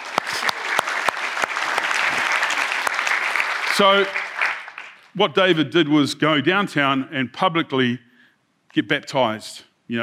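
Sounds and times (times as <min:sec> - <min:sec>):
church audience clapping: 0:00.0 - 0:05.4
speech: 0:03.8 - 0:04.2, 0:05.2 - 0:08.1, 0:08.7 - 0:10.0.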